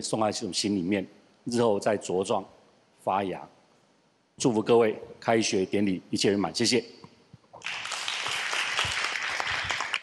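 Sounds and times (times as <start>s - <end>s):
speech: 0.0s - 3.6s, 4.4s - 7.0s
audience applause: 7.6s - 10.0s.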